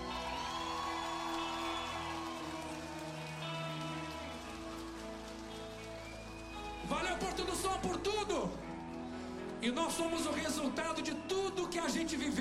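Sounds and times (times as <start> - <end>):
audience applause: 0.0 - 9.0
speech: 6.9 - 8.7, 9.6 - 12.3.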